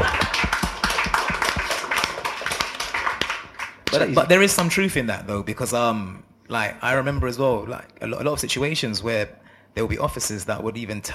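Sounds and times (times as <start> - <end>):
small group clapping: 0.0 - 4.8
speech: 4.0 - 11.1.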